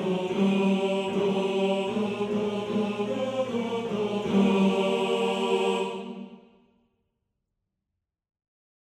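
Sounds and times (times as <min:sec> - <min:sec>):
second tenors of a male choir singing: 0:00.0 - 0:06.5.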